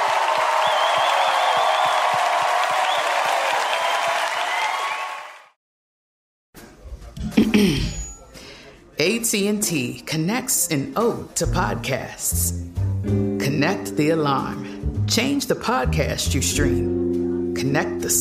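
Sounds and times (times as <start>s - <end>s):
live crowd applauding: 0.0s - 5.6s
whistles from a live crowd: 0.6s - 2.2s, 2.8s - 5.2s
speech: 9.0s - 18.1s.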